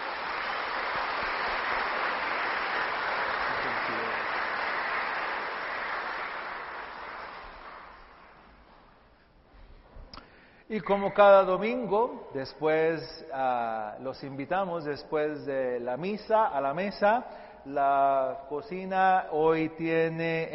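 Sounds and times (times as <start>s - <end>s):
audience applause: 0.0s - 8.5s
speech: 10.7s - 20.5s.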